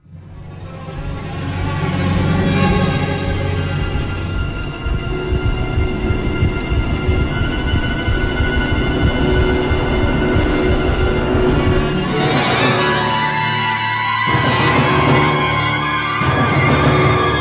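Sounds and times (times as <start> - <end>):
fight music: 0.9 - 17.3.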